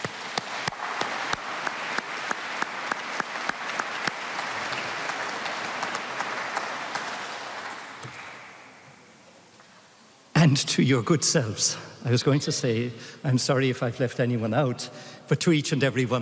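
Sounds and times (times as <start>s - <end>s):
audience applause: 0.0s - 8.8s
speech: 10.4s - 16.2s.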